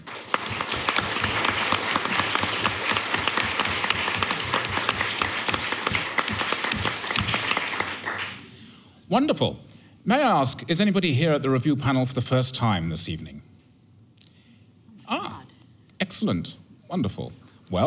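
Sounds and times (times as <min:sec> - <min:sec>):
audience applause: 0:00.0 - 0:08.5
speech: 0:09.1 - 0:13.5, 0:16.2 - 0:17.8.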